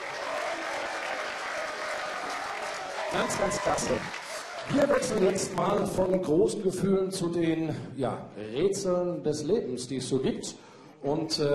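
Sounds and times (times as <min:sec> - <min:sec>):
audience applause for a singer at a live entertainment show: 0:00.0 - 0:06.2
speech: 0:03.1 - 0:11.5.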